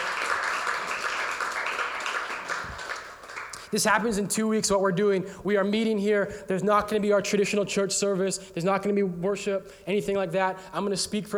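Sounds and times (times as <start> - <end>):
audience clapping hands: 0.0 - 3.8
speech: 3.7 - 11.3.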